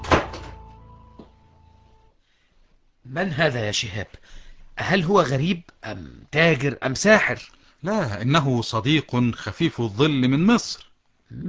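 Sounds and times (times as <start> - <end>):
door thudding shut: 0.0 - 0.6
speech: 3.1 - 11.4.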